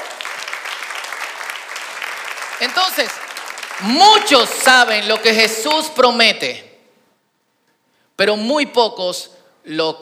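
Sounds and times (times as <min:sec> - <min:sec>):
audience applause: 0:00.0 - 0:05.4
speech: 0:02.6 - 0:03.2, 0:03.8 - 0:06.7, 0:08.2 - 0:10.0.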